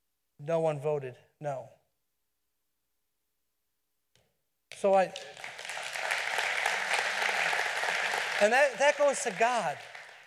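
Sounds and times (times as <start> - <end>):
speech: 0.4 - 1.8, 4.8 - 5.5, 8.4 - 9.9
crowd applause: 5.2 - 10.2.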